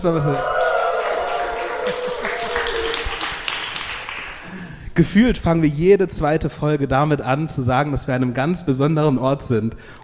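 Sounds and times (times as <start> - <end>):
speech: 0.0 - 0.5, 5.0 - 10.0
live audience cheering: 0.0 - 4.4.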